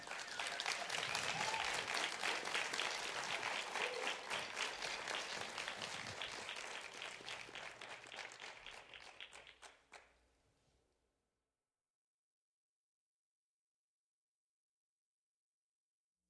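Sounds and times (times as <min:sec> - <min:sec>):
audience applause: 0:00.0 - 0:10.0.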